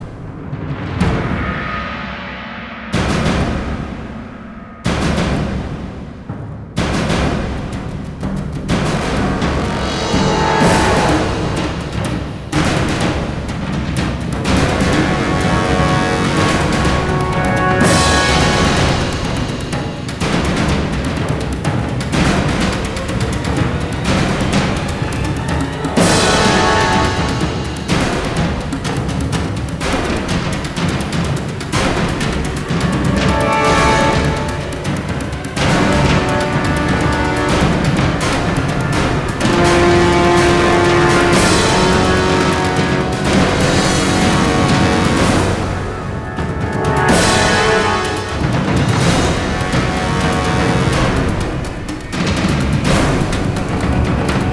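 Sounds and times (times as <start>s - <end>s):
battle music in F sharp minor: 0.0s - 54.5s.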